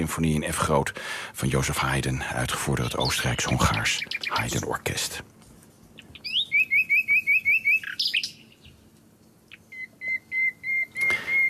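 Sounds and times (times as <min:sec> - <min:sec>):
speech: 0:00.0 - 0:05.3
nightingale singing: 0:02.6 - 0:04.7, 0:05.9 - 0:08.9, 0:09.5 - 0:11.4.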